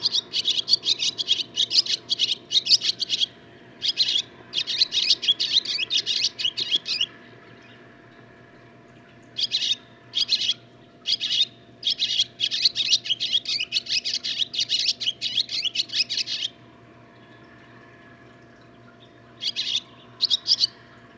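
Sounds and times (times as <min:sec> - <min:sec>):
barn swallow twittering song: 0:00.0 - 0:07.8, 0:09.4 - 0:16.6, 0:19.0 - 0:20.8.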